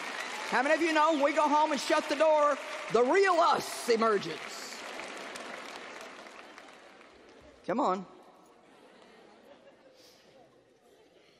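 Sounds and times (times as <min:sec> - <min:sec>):
audience clapping: 0:00.0 - 0:07.7
speech: 0:00.5 - 0:04.6, 0:07.7 - 0:08.2.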